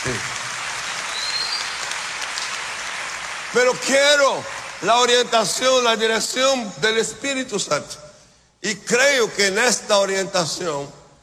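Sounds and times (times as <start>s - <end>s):
church congregation applauding: 0.0s - 6.1s
speech: 0.1s - 0.4s, 3.5s - 8.0s, 8.6s - 11.0s.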